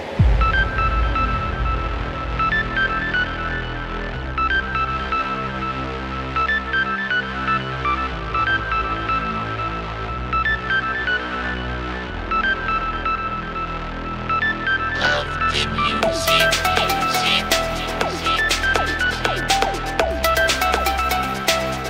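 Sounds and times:
electro freestyle music: 0.1 - 21.8.

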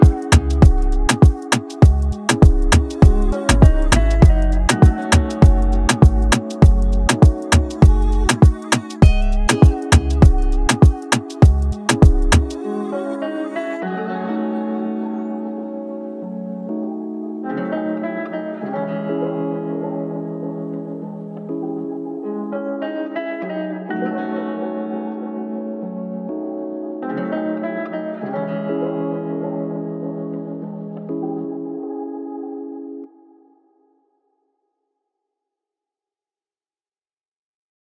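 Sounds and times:
Afrobeat and Latino style instrumental beat: 0.0 - 13.8.

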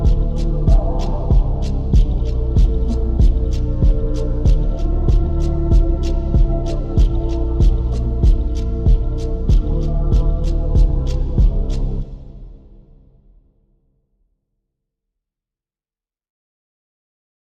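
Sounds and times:
slowed reverb music: 0.0 - 13.2.

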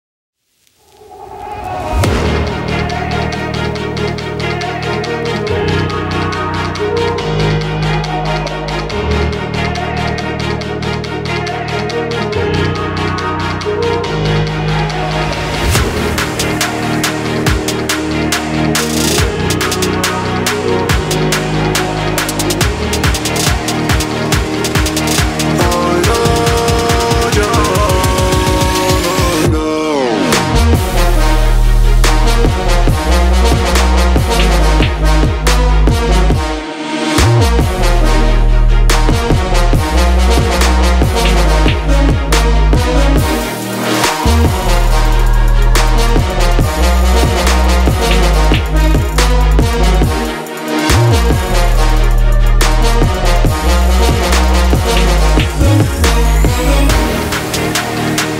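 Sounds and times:
trap remix: 1.4 - 58.3.

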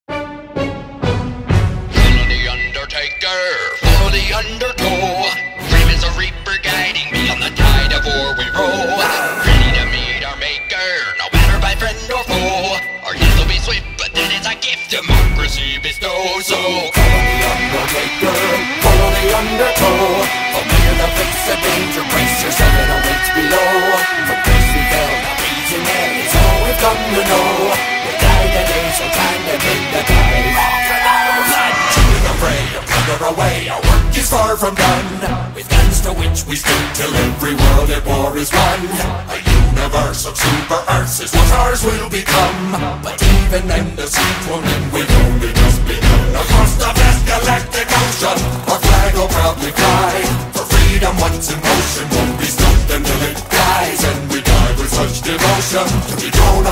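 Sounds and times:
space shanty song: 0.1 - 56.6.

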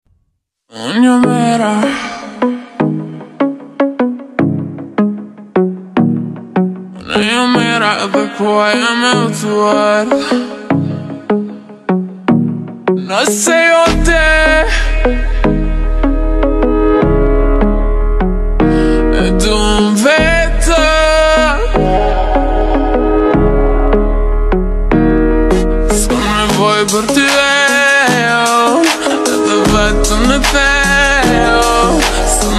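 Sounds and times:
slowed reverb music: 1.0 - 32.5.

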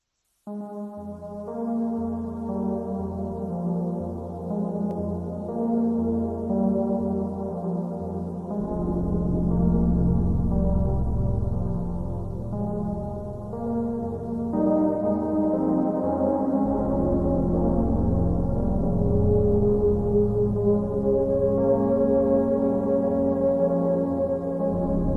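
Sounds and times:
super slowed music with reverb: 0.2 - 25.1.

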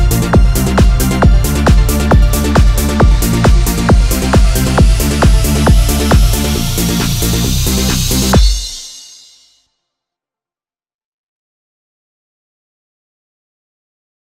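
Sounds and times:
dance music: 0.0 - 9.4.

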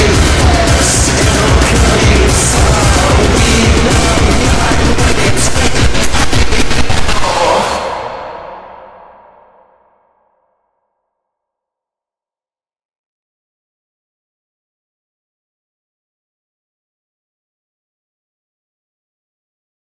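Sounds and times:
slowed bass boosted reverb remix: 0.0 - 9.5.

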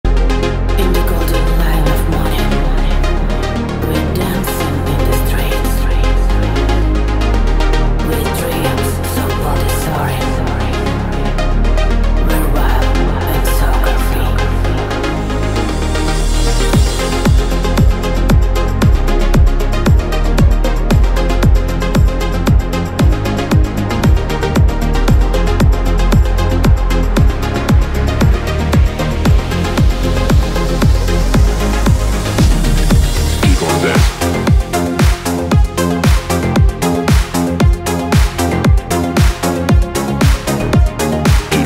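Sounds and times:
dance music: 0.0 - 41.6.

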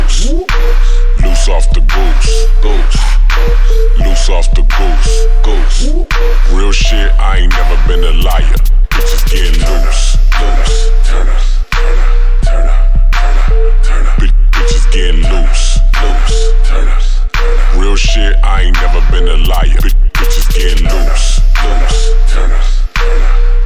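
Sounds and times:
31-35 Hz low bass screwed and rebassed: 0.0 - 23.6.

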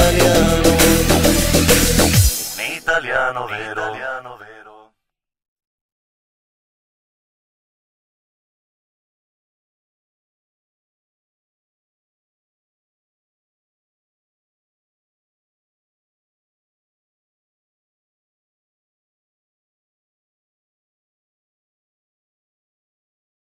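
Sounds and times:
techno remix: 0.0 - 4.8.

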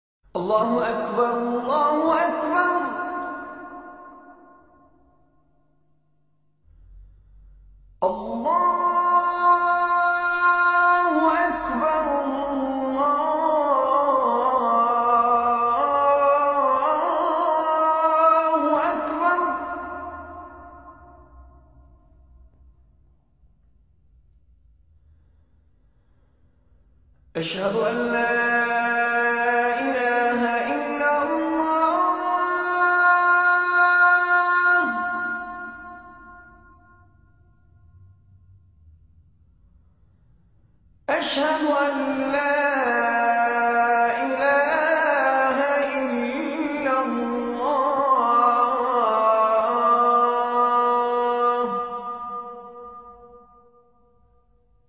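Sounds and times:
Azan call to prayer: 0.3 - 4.8, 8.0 - 21.5, 27.3 - 36.9, 41.1 - 53.4.

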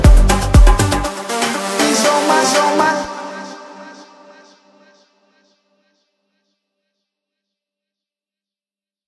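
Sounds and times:
afro house music: 0.0 - 4.8.

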